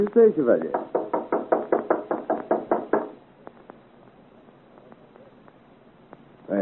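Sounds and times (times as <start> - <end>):
knocking on a door: 0.6 - 3.2.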